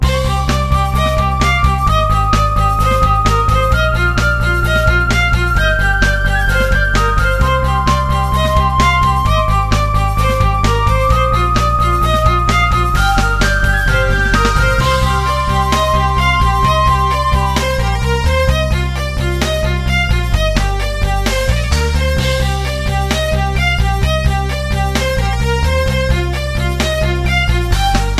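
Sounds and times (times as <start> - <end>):
battle music: 0.0 - 28.1.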